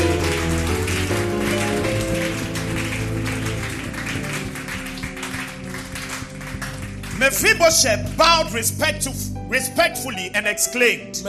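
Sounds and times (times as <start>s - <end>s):
audience clapping: 0.0s - 8.6s
speech: 7.3s - 11.2s.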